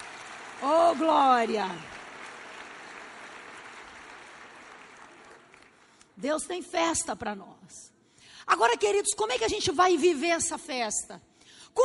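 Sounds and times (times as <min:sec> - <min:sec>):
audience applauding loudly: 0:00.0 - 0:06.2
speech: 0:00.6 - 0:02.0, 0:06.2 - 0:07.9, 0:08.5 - 0:11.8.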